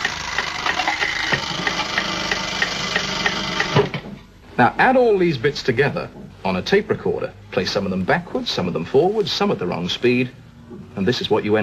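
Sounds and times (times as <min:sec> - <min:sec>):
broken alarm clock mechanism whirring and ticking: 0:00.0 - 0:04.0
speech: 0:04.6 - 0:10.4, 0:11.0 - 0:11.6.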